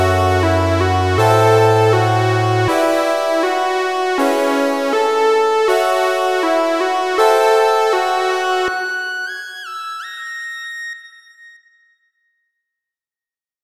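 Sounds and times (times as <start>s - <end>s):
8-bit music: 0.0s - 9.5s.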